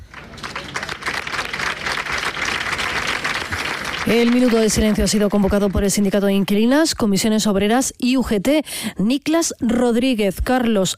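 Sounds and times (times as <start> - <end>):
crowd applause: 0.0 - 6.3
speech: 4.1 - 10.9.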